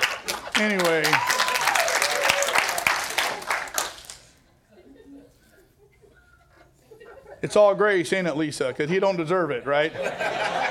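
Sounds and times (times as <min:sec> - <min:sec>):
weak scattered applause from a few people: 0:00.0 - 0:04.4
speech: 0:00.6 - 0:01.3, 0:07.4 - 0:10.6
laughter: 0:04.5 - 0:08.0, 0:08.6 - 0:10.7.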